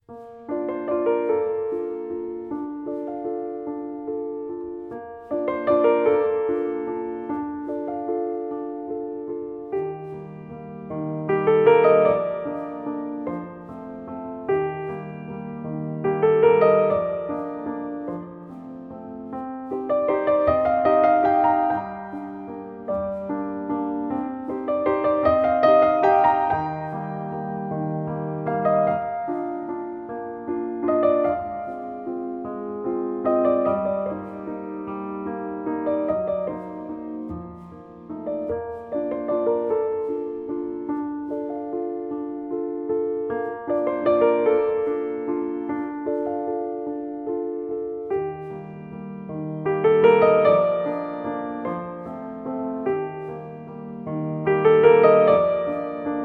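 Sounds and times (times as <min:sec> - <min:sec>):
solo piano: 0:00.0 - 0:56.2.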